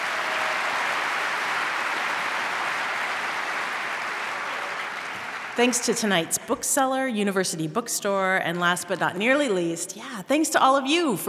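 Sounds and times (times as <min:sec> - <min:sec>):
audience applause: 0:00.0 - 0:06.1
speech: 0:05.6 - 0:11.2.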